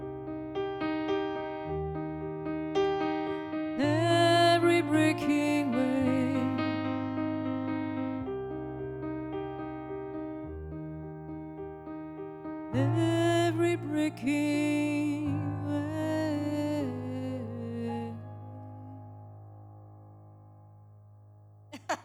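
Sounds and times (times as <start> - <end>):
piano: 0.0 - 21.9.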